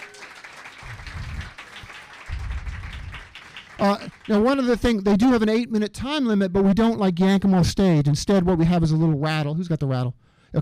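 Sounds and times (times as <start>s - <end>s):
audience applause for storytellers at a live storytelling night: 0.0s - 4.8s
speech: 3.8s - 10.6s.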